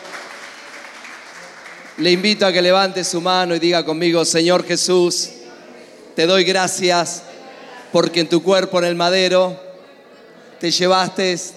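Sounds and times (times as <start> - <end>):
audience applause: 0.0 - 2.7
speech: 2.0 - 5.4, 6.2 - 7.3, 7.9 - 9.6, 10.6 - 11.5.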